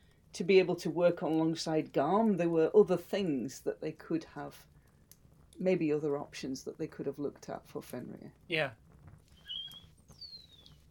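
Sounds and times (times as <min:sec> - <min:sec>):
speech: 0:00.4 - 0:04.7, 0:05.6 - 0:08.8
birds chirping in the trees: 0:09.3 - 0:10.8.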